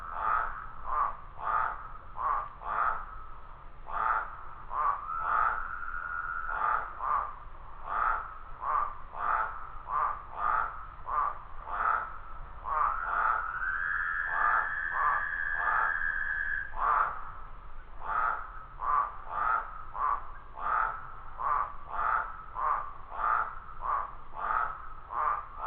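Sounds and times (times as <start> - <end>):
wetland spadefoot toad chorus: 0.0 - 25.6.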